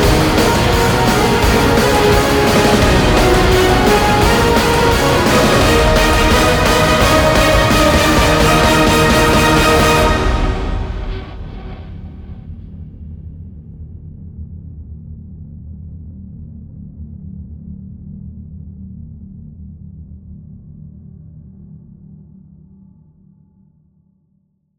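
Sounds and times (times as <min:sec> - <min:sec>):
remix music: 0:00.0 - 0:11.8.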